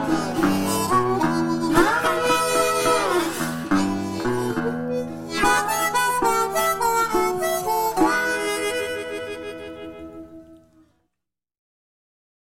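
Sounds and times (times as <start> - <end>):
acoustic Delta blues music: 0.0 - 10.8.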